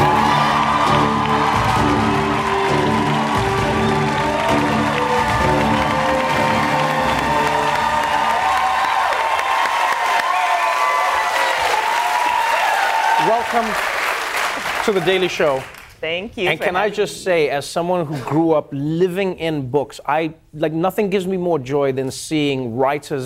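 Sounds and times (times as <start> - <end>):
talk show studio audience applause and cheering: 0.0 - 15.9
speech: 14.9 - 23.2.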